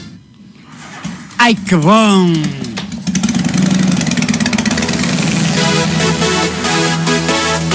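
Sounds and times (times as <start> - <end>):
speech: 1.5 - 2.7
motorcycle engine idling and revving: 2.3 - 7.7.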